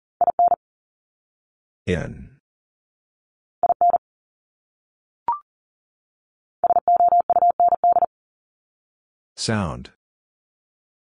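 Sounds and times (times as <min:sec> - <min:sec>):
morse code beeps: 0:00.2 - 0:00.6, 0:03.6 - 0:04.0, 0:06.6 - 0:08.1
speech: 0:01.9 - 0:02.3, 0:09.4 - 0:10.0.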